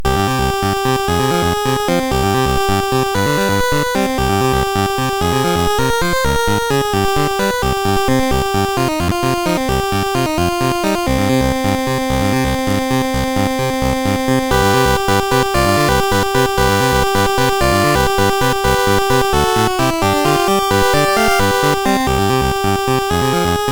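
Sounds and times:
SID MOS6581R4 chip music: 0:00.0 - 0:23.7.

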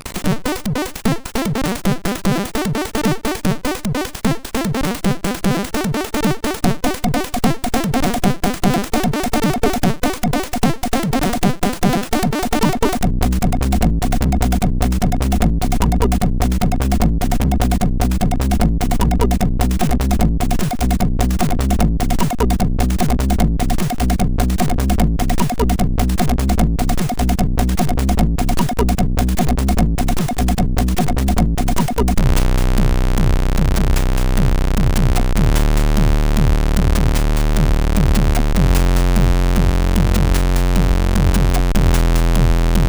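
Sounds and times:
house music on a MOS6581R4 chip: 0:00.3 - 0:42.8.

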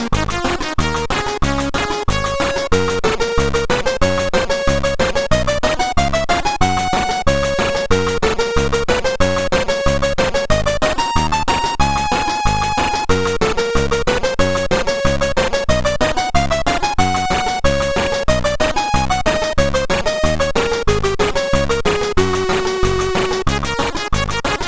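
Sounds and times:
ragtime music: 0:00.0 - 0:24.6.

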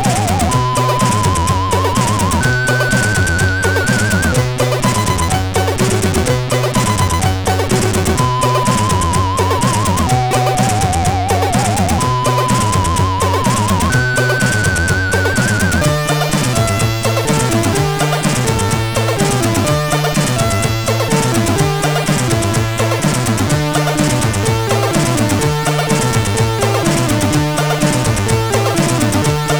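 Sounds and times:
news tune on a MOS 8580 sound chip: 0:00.0 - 0:29.5.

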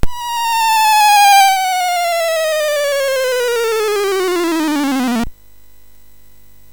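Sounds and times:
SID MOS6581R3 chip sound: 0:00.0 - 0:05.3.

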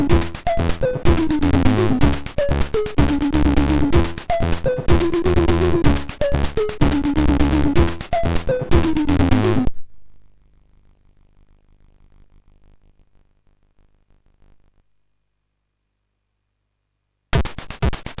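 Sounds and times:
sound effects from MOS6581R2 sound chip: 0:00.0 - 0:09.7.

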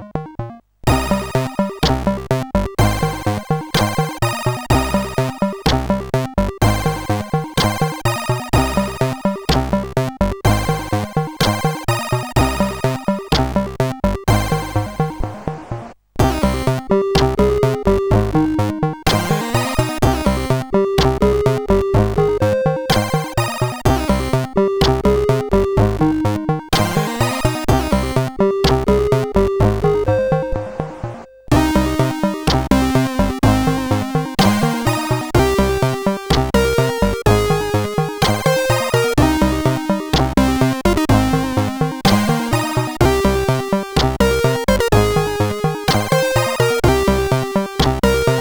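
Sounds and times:
CSG 8580 sound chip: 0:00.1 - 0:15.5, 0:16.2 - 0:48.3.

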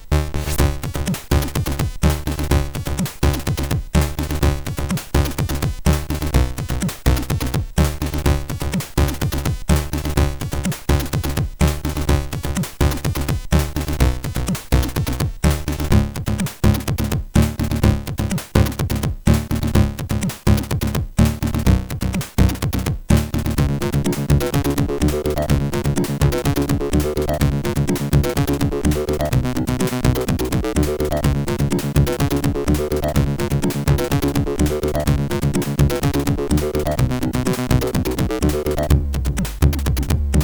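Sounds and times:
SID chip MOS6581R4 music: 0:00.2 - 0:40.4.

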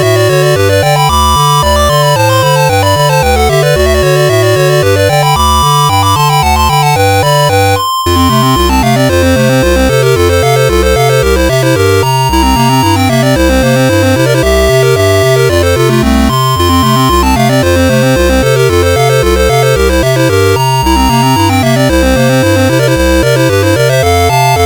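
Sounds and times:
polka played on a CSG8580R5 sound chip: 0:00.0 - 0:24.6.

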